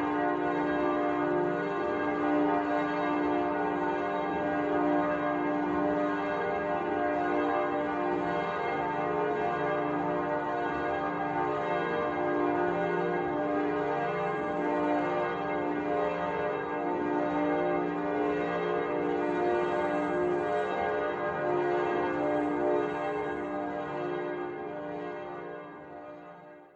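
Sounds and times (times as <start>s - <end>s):
church bells ringing: 0.0s - 26.2s.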